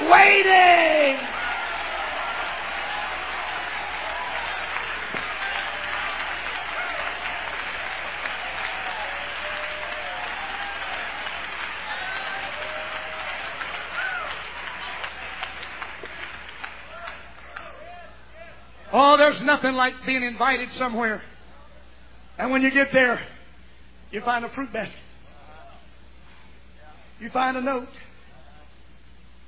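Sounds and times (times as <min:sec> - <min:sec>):
audience hand clapping: 0:00.0 - 0:18.0
speech: 0:19.5 - 0:21.3, 0:22.4 - 0:23.3, 0:24.1 - 0:25.0, 0:27.2 - 0:28.1.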